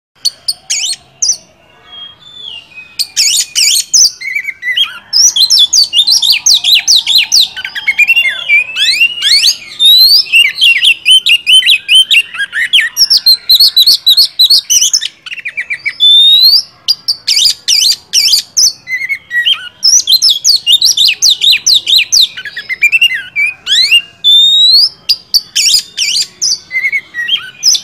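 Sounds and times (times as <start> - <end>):
Oriental magpie-robin song: 0.2 - 27.8.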